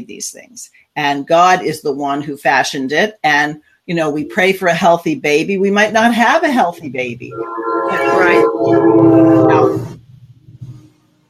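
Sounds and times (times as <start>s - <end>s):
speech: 0.0s - 10.0s
train horn blast: 7.2s - 10.0s.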